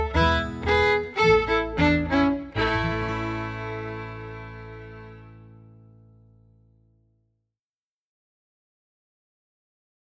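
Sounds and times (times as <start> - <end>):
fiddle playing a processional: 0.0 - 5.6.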